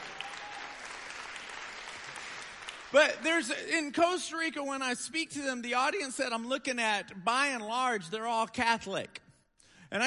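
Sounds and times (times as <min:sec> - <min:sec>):
audience applause at a church talk: 0:00.0 - 0:03.2
speech: 0:02.9 - 0:09.1.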